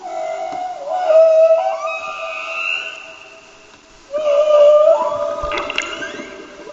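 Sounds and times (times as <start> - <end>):
humpback whale song: 0.0 - 6.7
watery underwater hiss: 2.6 - 6.7.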